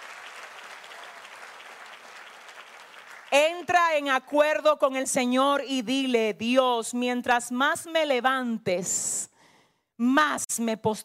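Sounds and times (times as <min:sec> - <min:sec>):
audience applause: 0:00.0 - 0:03.4
speech: 0:03.3 - 0:09.3, 0:10.0 - 0:11.0.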